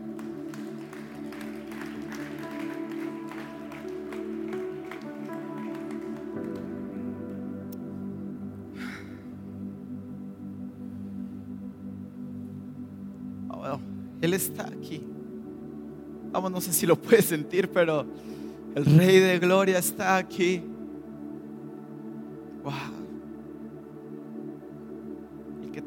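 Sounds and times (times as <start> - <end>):
audience applauding: 0.0 - 7.4
sustained music: 0.0 - 25.8
speech: 14.2 - 15.1, 16.4 - 20.7.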